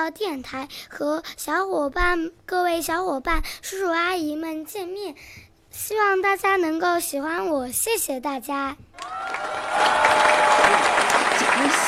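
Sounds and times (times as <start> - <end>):
speech: 0.0 - 11.0
audience applause: 9.0 - 11.8.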